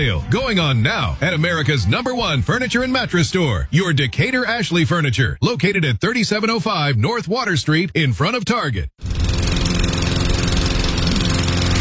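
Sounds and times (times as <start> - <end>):
speech: 0.0 - 9.1
lawn mower engine failing to start: 9.0 - 11.7.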